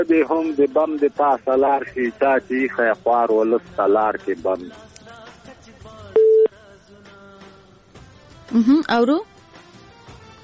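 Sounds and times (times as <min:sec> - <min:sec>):
speech: 0:00.0 - 0:04.9, 0:08.5 - 0:09.3
telephone busy tone after a call-in line cut off: 0:06.2 - 0:06.5.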